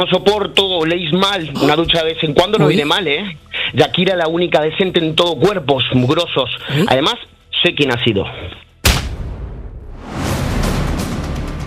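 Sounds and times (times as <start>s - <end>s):
speech: 0.0s - 8.6s
punch sound effect: 8.8s - 11.0s.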